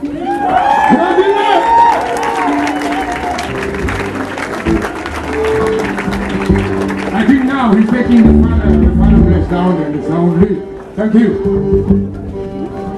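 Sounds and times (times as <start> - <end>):
crowd applause: 0.1 - 10.2
speech: 8.0 - 12.1.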